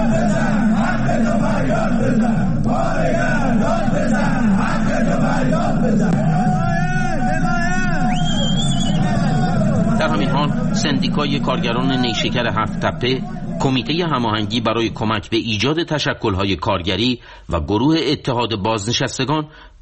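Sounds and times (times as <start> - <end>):
protesting factory workers chanting and shouting at a strike rally in Alvand, Qazvin: 0.0 - 15.6
speech: 10.8 - 19.8.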